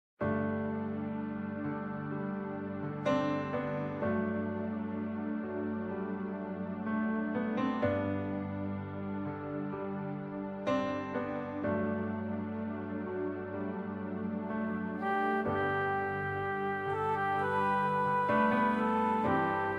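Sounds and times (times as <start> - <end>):
instrumental music: 0.2 - 19.7.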